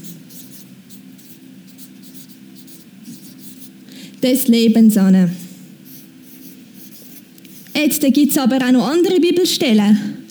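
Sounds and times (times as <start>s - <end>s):
chalk or marker scratching on a board: 0.0s - 3.8s, 5.4s - 8.0s
speech: 4.2s - 5.4s, 7.8s - 10.2s.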